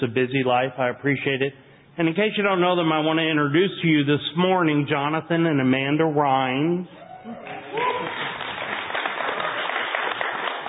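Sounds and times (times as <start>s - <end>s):
speech: 0.0s - 7.6s
audience applause: 7.4s - 10.6s.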